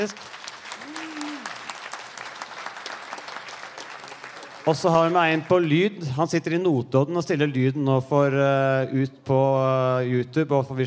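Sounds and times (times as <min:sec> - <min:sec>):
speech: 0:00.0 - 0:00.4, 0:04.7 - 0:10.8
audience applause: 0:00.0 - 0:05.7.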